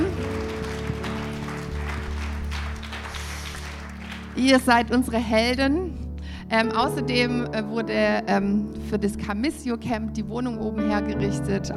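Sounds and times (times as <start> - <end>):
audience applause: 0.0 - 4.9
speech: 4.4 - 11.7.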